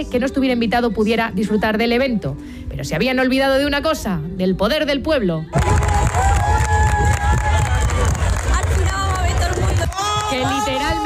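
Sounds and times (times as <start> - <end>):
speech: 0.0 - 5.9
crowd applauding: 5.5 - 11.0.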